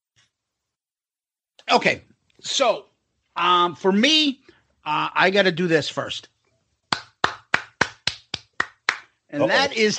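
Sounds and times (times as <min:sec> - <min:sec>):
speech: 0:01.7 - 0:06.4, 0:09.3 - 0:09.9
person clapping: 0:06.9 - 0:09.2.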